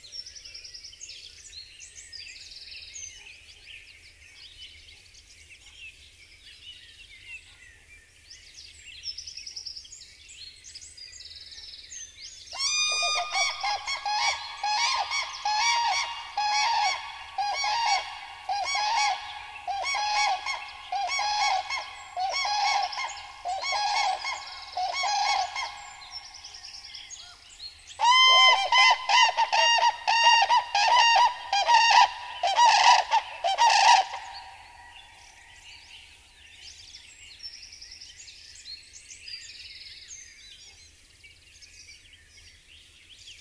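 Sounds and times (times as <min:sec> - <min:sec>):
cranes trumpeting: 0:12.6 - 0:26.4, 0:28.0 - 0:34.6.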